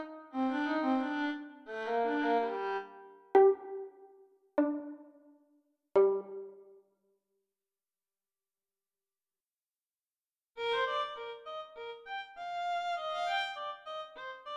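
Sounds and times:
violin piece: 0.0 - 5.3, 6.0 - 6.5, 10.6 - 14.5.

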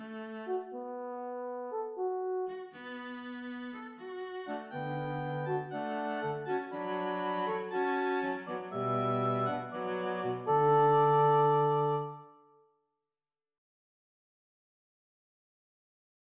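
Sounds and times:
cello: 0.0 - 0.8, 2.5 - 12.2
horn: 0.0 - 12.5
oboe: 2.5 - 12.5.

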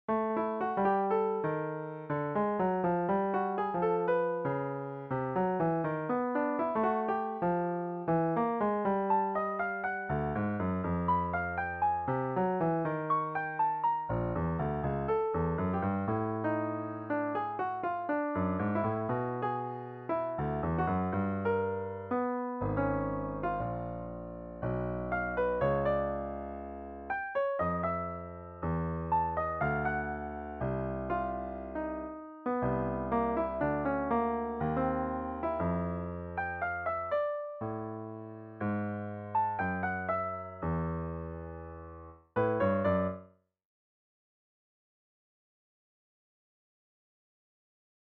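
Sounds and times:
short piano piece: 0.1 - 43.4.

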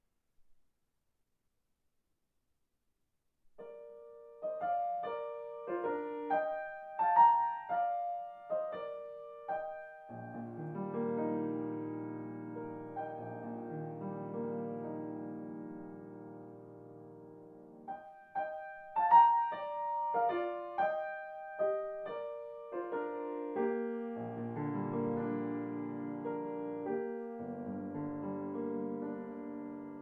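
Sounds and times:
solo piano in B-flat major: 3.5 - 30.0.

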